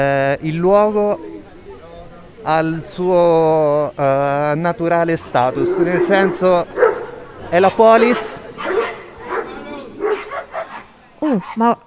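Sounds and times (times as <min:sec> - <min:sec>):
speech: 0:00.0 - 0:01.3, 0:02.4 - 0:06.8, 0:07.5 - 0:08.5, 0:11.3 - 0:11.8
dogs barking and yipping: 0:05.3 - 0:11.8.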